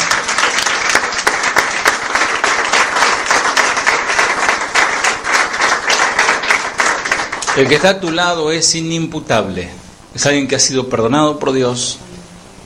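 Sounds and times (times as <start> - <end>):
audience applauding: 0.0 - 8.4
speech: 7.6 - 12.1.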